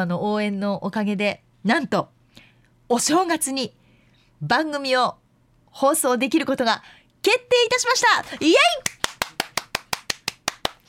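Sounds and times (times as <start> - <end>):
speech: 0.0 - 2.2, 2.9 - 3.8, 4.4 - 9.0
one person clapping hands: 8.8 - 10.8.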